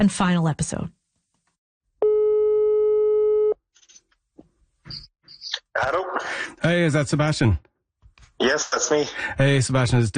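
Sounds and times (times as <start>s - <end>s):
speech: 0.0s - 1.0s, 5.8s - 7.7s, 8.4s - 10.1s
telephone ringing tone: 2.0s - 3.6s.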